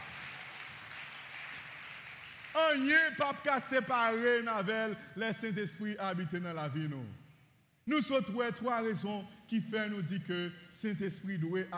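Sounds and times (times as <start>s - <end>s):
audience applause: 0.0s - 3.0s
speech: 2.6s - 7.2s, 7.9s - 11.7s.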